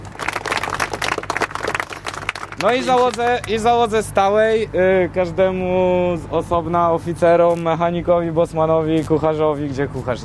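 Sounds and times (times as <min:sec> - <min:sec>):
crowd applause for the teachers: 0:00.0 - 0:03.6
speech: 0:02.6 - 0:10.2.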